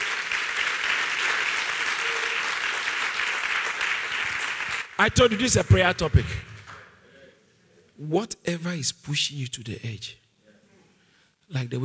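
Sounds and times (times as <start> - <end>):
audience clapping: 0.0 - 6.9
speech: 5.0 - 6.5, 8.0 - 10.2, 11.5 - 11.8.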